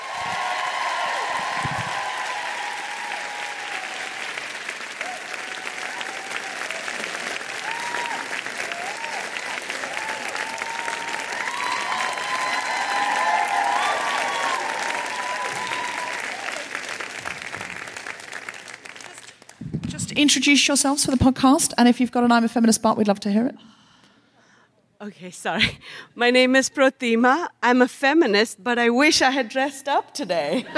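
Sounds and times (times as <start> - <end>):
audience applause at a live feminist event: 0.0 - 19.6
speech: 20.2 - 23.8, 25.1 - 30.7.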